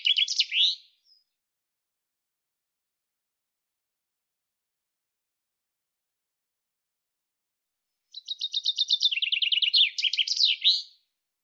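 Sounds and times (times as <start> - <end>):
common chaffinch song phrase: 0.0 - 1.4, 7.9 - 11.4.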